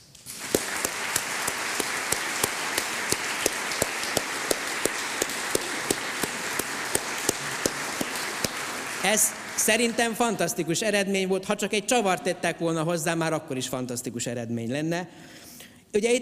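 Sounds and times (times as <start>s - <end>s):
audience applause: 0.3s - 10.3s
speech: 9.0s - 16.2s.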